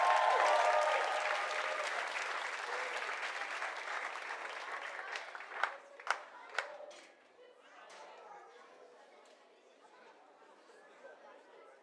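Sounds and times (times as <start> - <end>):
crowd applauding and cheering for kids: 0.0 - 5.8.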